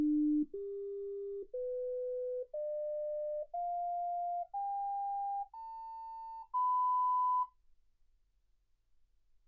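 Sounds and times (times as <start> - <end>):
sine tones: 0.1 - 7.5.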